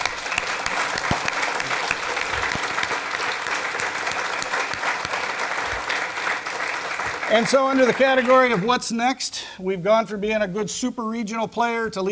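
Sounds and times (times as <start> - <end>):
audience round of applause: 0.0 - 8.7
speech: 7.3 - 12.1.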